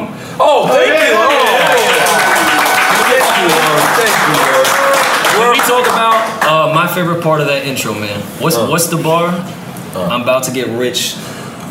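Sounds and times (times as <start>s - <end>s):
applause: 1.0s - 6.6s
speech: 6.9s - 11.3s.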